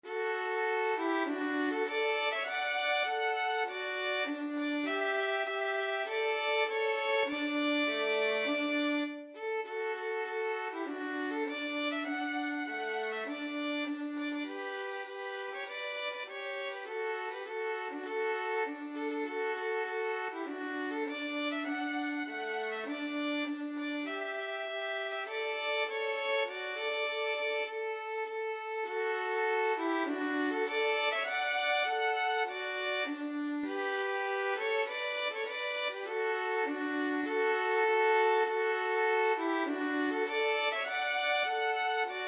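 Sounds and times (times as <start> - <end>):
violin duet playing a hymn: 0.0 - 42.2.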